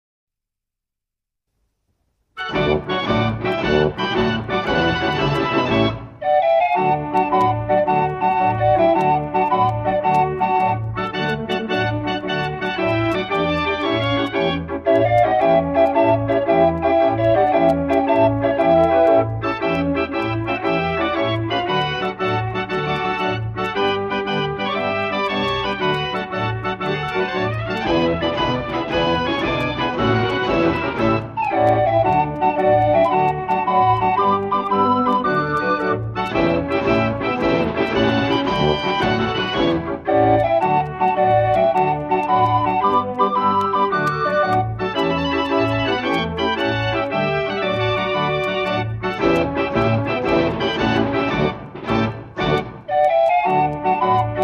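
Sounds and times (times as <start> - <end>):
Dutch street barrel organ playing: 2.4 - 54.4.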